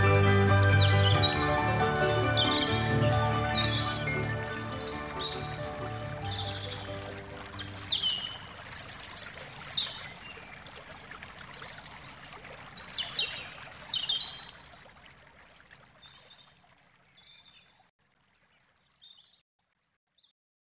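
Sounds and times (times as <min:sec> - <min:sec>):
classical music: 0:00.0 - 0:08.1
spring nature sounds: 0:00.0 - 0:20.3.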